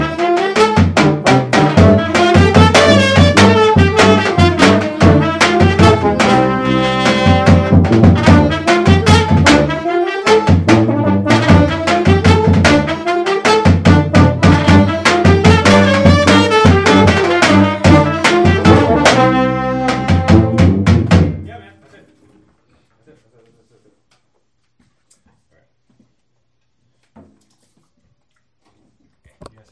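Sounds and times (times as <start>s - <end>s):
drum hits at a rehearsal: 0.0s - 21.5s.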